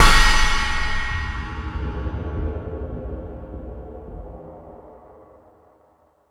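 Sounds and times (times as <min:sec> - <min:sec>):
metal drums on E-MU Pro-Cussion: 0:00.0 - 0:02.9.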